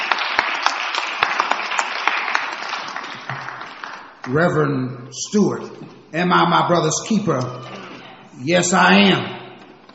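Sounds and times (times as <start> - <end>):
congregation clapping hands in praise during a church service: 0.0 - 4.7
speech: 4.3 - 7.8, 8.4 - 9.4.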